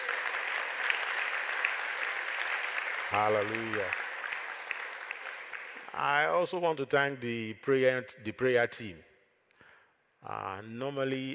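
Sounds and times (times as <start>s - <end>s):
audience clapping hands: 0.0s - 6.3s
speech: 3.1s - 4.0s, 6.0s - 9.1s, 10.2s - 11.3s.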